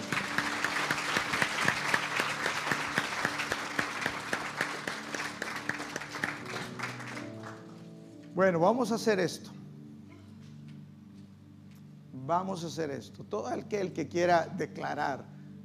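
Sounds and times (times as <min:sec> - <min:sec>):
audience applause: 0:00.0 - 0:07.8
speech: 0:08.4 - 0:09.6, 0:12.3 - 0:15.3.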